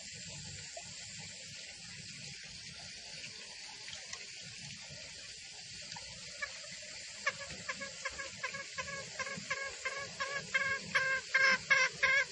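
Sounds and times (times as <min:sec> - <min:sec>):
female junglefowl call used as a lure for trapping in the forest: 0:06.4 - 0:12.3.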